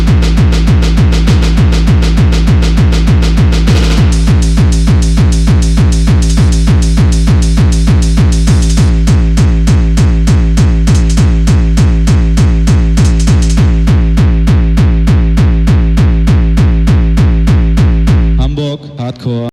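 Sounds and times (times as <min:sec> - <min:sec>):
hardcore anthem straight kick drum rave in Hamburg: 0:00.0 - 0:18.7.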